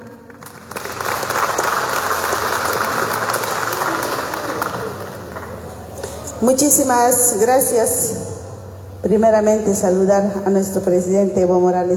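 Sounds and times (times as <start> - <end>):
audience applause: 0.0 - 6.0
speech: 6.4 - 8.2, 9.0 - 11.9.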